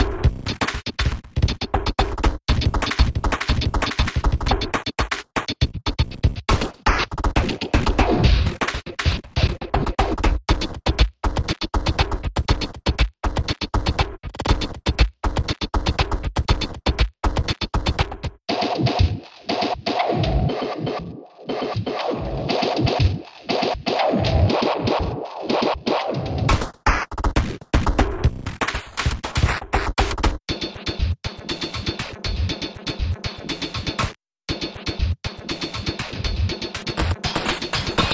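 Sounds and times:
glitch percussion: 0.0 - 38.1.

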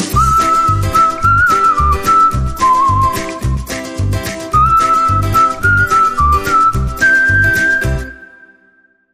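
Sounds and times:
person whistling: 0.1 - 3.7, 4.5 - 8.9.

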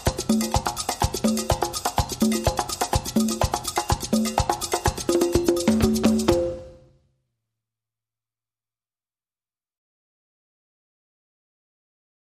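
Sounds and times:
calypso loop: 0.0 - 6.8.

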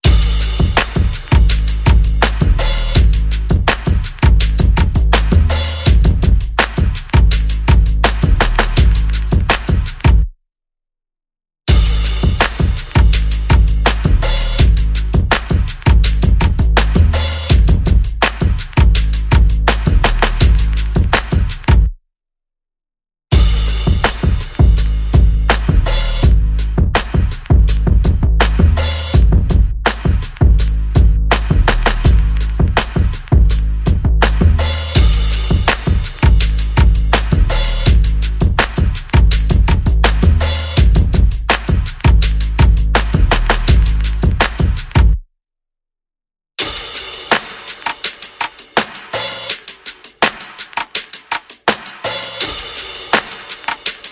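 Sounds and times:
bass: 0.0 - 10.2, 11.7 - 21.9, 23.3 - 45.2
percussion: 0.0 - 10.3, 11.7 - 21.9, 23.3 - 45.2, 46.6 - 54.1.

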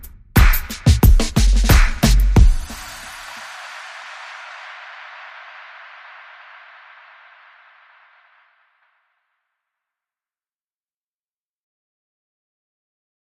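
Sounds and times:
music beat: 0.0 - 8.4.

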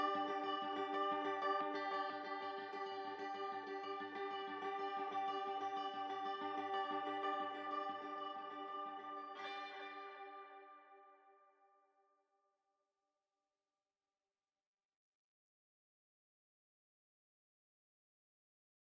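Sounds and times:
guitars playing: 0.0 - 11.0.

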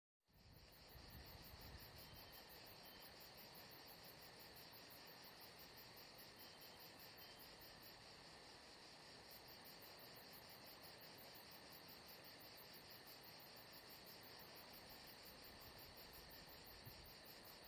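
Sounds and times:
crickets chirping at Saint-Jean-de-Luz: 0.3 - 17.6.

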